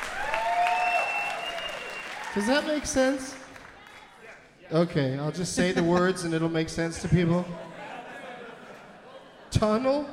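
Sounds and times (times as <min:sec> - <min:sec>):
scattered applause: 0:00.0 - 0:04.4
speech: 0:02.4 - 0:03.4, 0:04.7 - 0:07.7, 0:09.6 - 0:10.1
laughter: 0:05.4 - 0:10.1.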